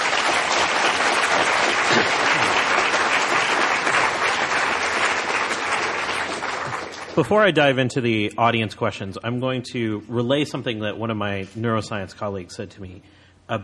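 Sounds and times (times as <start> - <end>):
audience applauding after a talk: 0.0 - 7.5
speech: 7.2 - 13.6.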